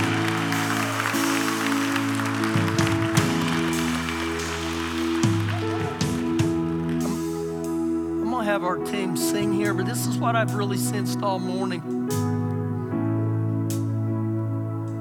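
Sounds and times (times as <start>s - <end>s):
audience clapping: 0.0s - 7.7s
sustained keyboard chords: 0.0s - 14.9s
speech: 8.6s - 12.0s.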